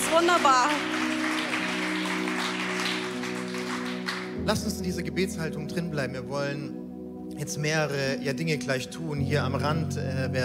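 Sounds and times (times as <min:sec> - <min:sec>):
audience applause: 0:00.0 - 0:04.4
speech: 0:00.1 - 0:01.0, 0:04.5 - 0:06.8, 0:07.4 - 0:10.4.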